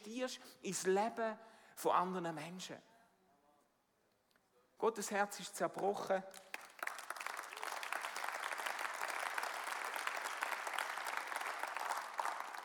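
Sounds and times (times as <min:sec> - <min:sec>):
speech: 0:00.1 - 0:02.9, 0:04.8 - 0:06.5
audience clapping: 0:05.8 - 0:12.6.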